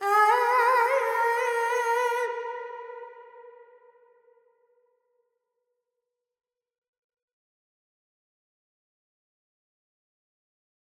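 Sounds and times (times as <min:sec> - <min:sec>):
Carnatic female vocal alaps in Dorian: 0:00.0 - 0:02.9.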